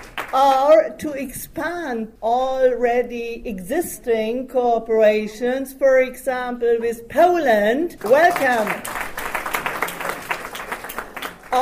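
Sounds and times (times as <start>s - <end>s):
audience clapping to welcome guests at a gathering: 0.0s - 0.4s, 8.0s - 11.5s
speech: 0.3s - 9.0s.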